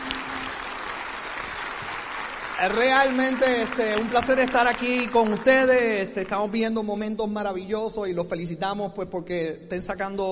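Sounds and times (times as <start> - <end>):
crowd applause: 0.0 - 6.1
speech: 2.6 - 10.2.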